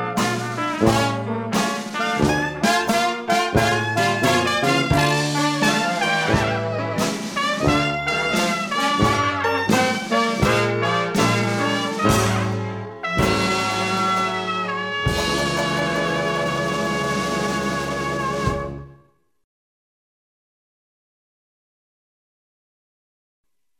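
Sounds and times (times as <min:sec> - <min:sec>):
blues music: 0:00.0 - 0:19.0.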